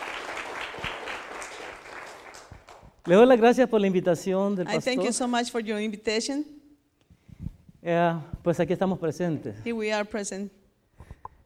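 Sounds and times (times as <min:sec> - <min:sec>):
applause: 0:00.0 - 0:03.2
speech: 0:03.1 - 0:06.6, 0:07.8 - 0:10.6.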